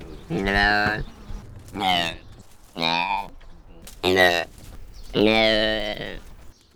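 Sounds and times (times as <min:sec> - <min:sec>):
juvenile goitered gazelle bleating: 0:00.0 - 0:02.2, 0:03.9 - 0:06.5.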